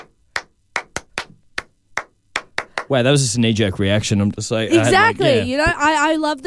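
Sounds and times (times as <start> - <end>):
hand claps: 0.0 - 3.0
speech: 2.9 - 6.4.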